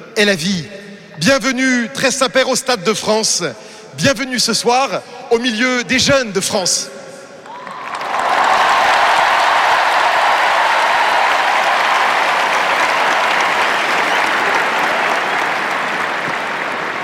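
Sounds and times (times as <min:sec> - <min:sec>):
speech: 0:00.2 - 0:07.0
huge stadium crowd at the Stade de France cheering and clapping for Pope Leo XIV: 0:07.4 - 0:17.0.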